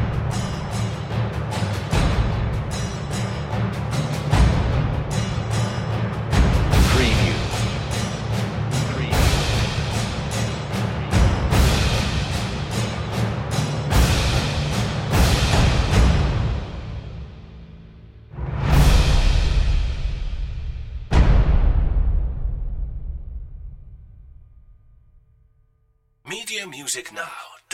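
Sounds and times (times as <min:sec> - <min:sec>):
percussion: 0:00.0 - 0:17.2, 0:18.4 - 0:22.1.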